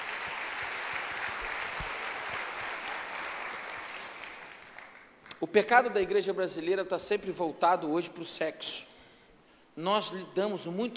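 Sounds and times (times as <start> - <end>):
applause: 0.0 - 5.2
speech: 5.4 - 8.9, 9.8 - 10.9.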